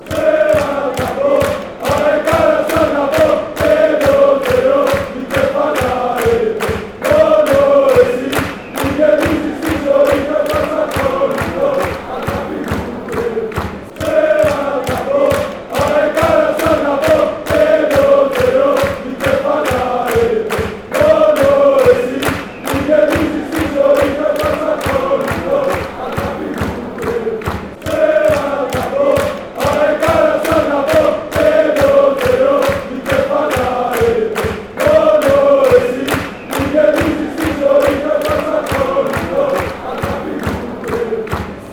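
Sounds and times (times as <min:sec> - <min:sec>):
chanting: 0:00.0 - 0:41.7.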